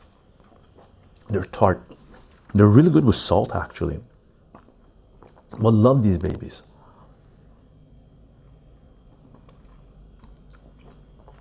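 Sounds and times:
biting and chewing sour cherries: 0:00.0 - 0:03.0, 0:04.5 - 0:05.8, 0:09.0 - 0:11.3
speech: 0:01.3 - 0:04.1, 0:05.5 - 0:06.7.

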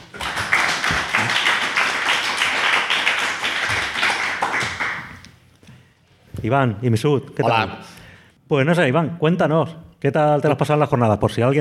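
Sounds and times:
audience applause: 0:00.0 - 0:05.2
speech: 0:06.4 - 0:11.5.

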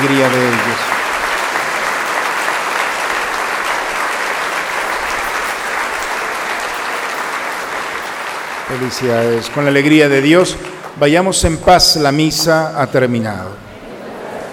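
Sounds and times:
speech: 0:00.0 - 0:00.9, 0:08.8 - 0:13.6
loud audience applause: 0:00.0 - 0:11.0.

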